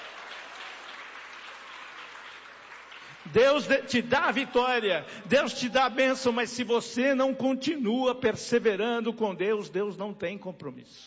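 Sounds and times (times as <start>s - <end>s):
audience clapping: 0.0s - 4.5s
speech: 3.2s - 11.0s.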